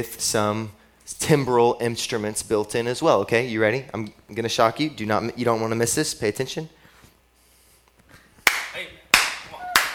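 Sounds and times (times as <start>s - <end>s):
speech: 0.0s - 6.8s
audience clapping in unison: 8.4s - 9.9s.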